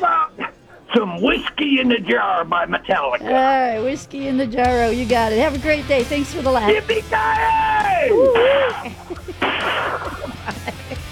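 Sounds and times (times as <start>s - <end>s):
laughter: 0.0s - 11.0s
speech: 0.9s - 9.0s
gunshots: 9.4s - 10.3s.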